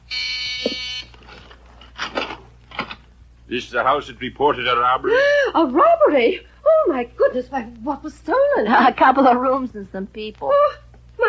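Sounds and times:
front doorbell buzzing: 0.0s - 1.1s
rustling and shuffling: 1.1s - 3.1s
speech: 3.5s - 11.2s.

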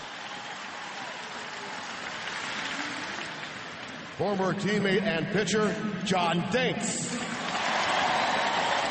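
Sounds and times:
large stadium crowd applauding: 0.0s - 4.2s, 6.9s - 8.9s
speech: 4.2s - 7.2s.

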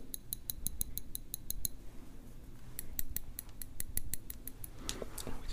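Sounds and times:
hair clicks and plucks: 0.0s - 1.8s, 2.7s - 5.4s.

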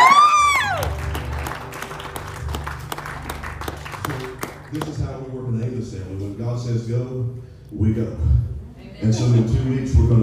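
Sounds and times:
audience applause: 0.0s - 5.3s
speech: 7.7s - 8.4s, 9.0s - 10.2s.

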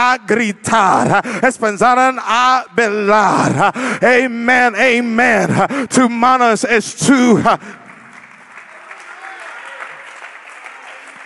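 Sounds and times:
speech: 0.0s - 7.8s
audience applauding: 7.6s - 11.2s.

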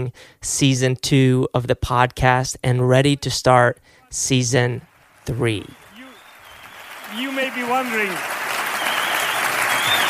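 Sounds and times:
speech: 0.0s - 5.8s, 7.1s - 8.4s
clapping: 4.9s - 10.0s.

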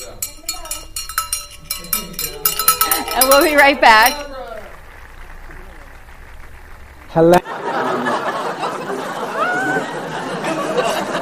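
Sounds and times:
hand bell being rung: 0.0s - 4.6s
speech: 3.2s - 4.3s, 7.2s - 8.1s
laughter: 7.2s - 11.2s.

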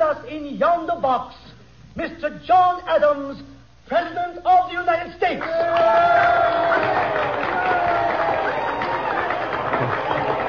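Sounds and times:
speech: 0.2s - 1.4s, 2.0s - 7.6s
theatre crowd cheering: 5.4s - 10.4s.

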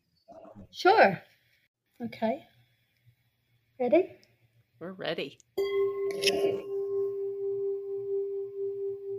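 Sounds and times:
speech: 0.7s - 1.3s, 2.0s - 2.5s, 3.8s - 4.2s, 4.8s - 6.7s
solfeggio chime ringing: 5.6s - 9.1s.

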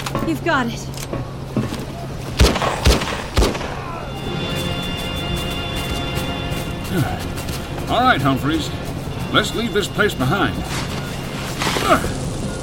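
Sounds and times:
steady droning hum: 0.0s - 12.6s
speech: 0.3s - 1.2s, 6.9s - 7.3s, 7.9s - 10.9s, 11.9s - 12.2s
gunshots laid down as cover fire in a shootout: 2.4s - 3.9s.

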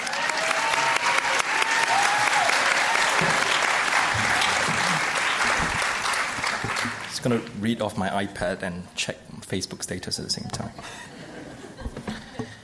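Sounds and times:
audience applause for the panel: 0.0s - 7.3s
speech: 7.2s - 11.1s
laughter: 10.8s - 12.6s.

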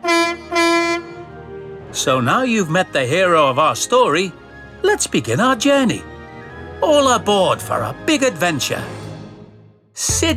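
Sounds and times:
diesel shunting engine horn: 0.0s - 1.6s
speech: 2.0s - 6.1s, 6.8s - 9.0s, 10.0s - 10.3s.

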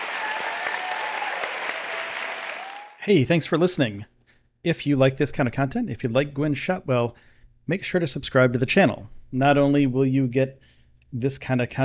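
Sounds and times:
audience applause for SpaceX's Gwynne Shotwell: 0.0s - 3.0s
speech: 3.1s - 11.8s.

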